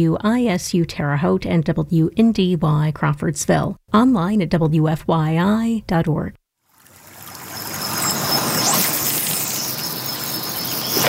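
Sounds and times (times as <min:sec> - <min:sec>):
speech: 0:00.0 - 0:06.4
West Fork of the White River flowing in north central Indianapolis: 0:06.7 - 0:11.0.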